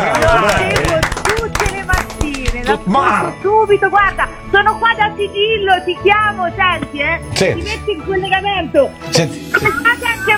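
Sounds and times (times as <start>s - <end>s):
applause: 0.0s - 2.8s
speech: 2.7s - 10.3s.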